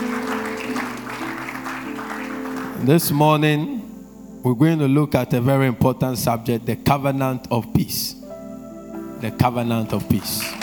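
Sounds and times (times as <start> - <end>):
audience clapping: 0.0 - 3.5, 9.8 - 10.6
speech: 2.8 - 3.8, 4.4 - 8.2, 9.2 - 10.6.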